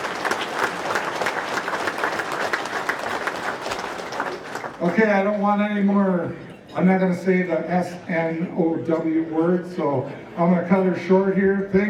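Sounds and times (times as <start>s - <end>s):
audience applause: 0.0s - 4.9s
speech: 4.8s - 11.8s.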